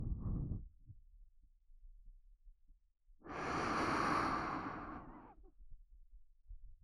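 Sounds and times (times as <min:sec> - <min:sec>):
gentle ASMR blowing into the right ear: 0:03.3 - 0:05.2.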